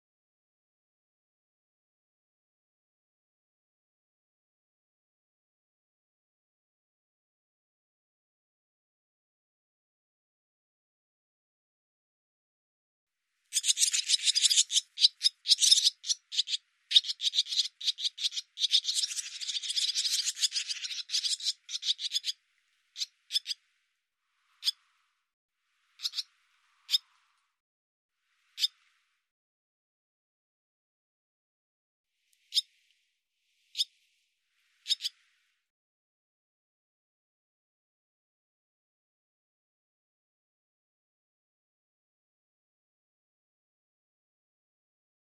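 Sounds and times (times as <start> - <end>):
barn swallow calling: 13.5 - 22.4, 23.0 - 23.6, 26.0 - 26.3, 34.9 - 35.1.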